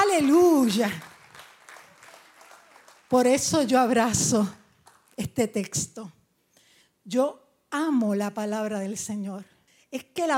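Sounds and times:
audience applauding: 0:00.0 - 0:03.3
speech: 0:00.2 - 0:01.1, 0:03.1 - 0:04.6, 0:05.2 - 0:06.2, 0:07.1 - 0:10.3.

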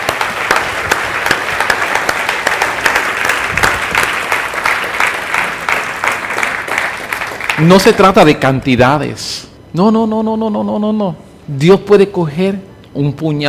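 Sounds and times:
audience applause: 0:00.0 - 0:08.1
speech: 0:07.6 - 0:13.4.

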